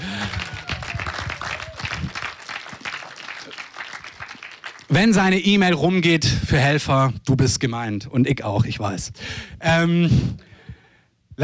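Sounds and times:
audience applause: 0.0 - 5.2
speech: 4.9 - 10.5.

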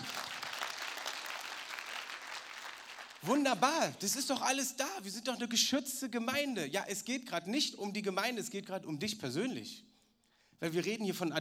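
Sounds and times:
audience applause: 0.0 - 3.5
speech: 3.2 - 9.9, 10.6 - 11.3.

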